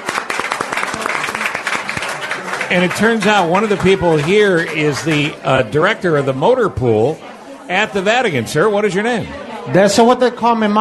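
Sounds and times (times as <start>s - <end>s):
crowd applauding at Egg Harbor Cafe: 0.0s - 6.4s
speech: 2.7s - 10.7s.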